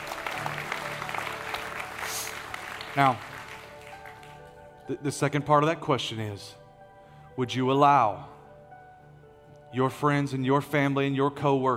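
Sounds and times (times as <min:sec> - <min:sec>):
audience clapping: 0:00.0 - 0:04.7
speech: 0:03.0 - 0:03.3, 0:04.9 - 0:06.6, 0:07.4 - 0:08.3, 0:09.7 - 0:11.7.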